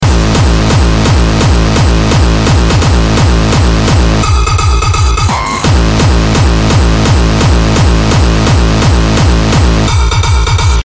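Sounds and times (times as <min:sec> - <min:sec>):
hardstyle beat: 0:00.0 - 0:10.8.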